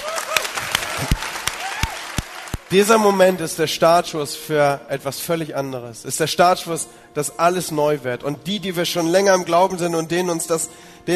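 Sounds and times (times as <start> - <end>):
church audience applause: 0.0 - 2.8
speech: 2.7 - 11.1.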